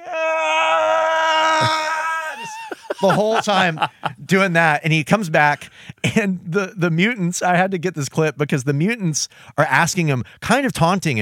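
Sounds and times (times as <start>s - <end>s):
cartoon villain's blood-curdling painful scream: 0.0s - 3.8s
laughter: 1.6s - 4.6s
speech: 3.0s - 11.2s.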